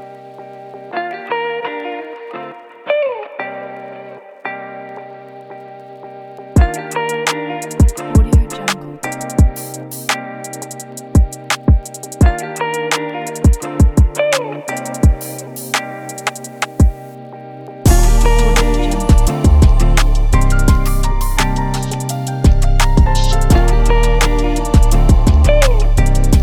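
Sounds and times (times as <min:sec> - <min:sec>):
hip hop music: 0:06.6 - 0:17.0, 0:17.9 - 0:26.4.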